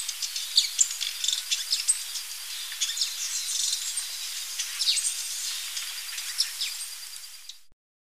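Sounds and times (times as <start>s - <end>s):
Brown Violetear calling: 0.0s - 7.6s.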